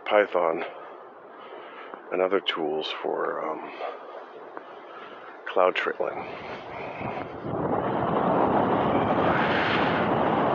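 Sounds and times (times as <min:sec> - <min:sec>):
speech: 0:00.1 - 0:00.8, 0:02.1 - 0:04.0, 0:05.6 - 0:07.6
gust of wind buffeting the microphone: 0:06.0 - 0:10.5.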